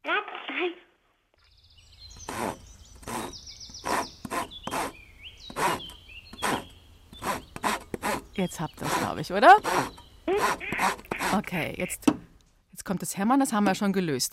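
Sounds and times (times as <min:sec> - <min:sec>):
speech: 0:00.6 - 0:00.8, 0:08.4 - 0:12.2, 0:12.9 - 0:14.3
sawing: 0:02.2 - 0:11.8.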